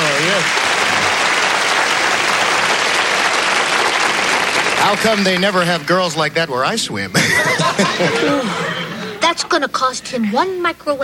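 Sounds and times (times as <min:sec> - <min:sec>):
audience applause: 0:00.0 - 0:06.2
speech: 0:04.9 - 0:08.7, 0:09.3 - 0:11.0
laughter: 0:07.1 - 0:09.4.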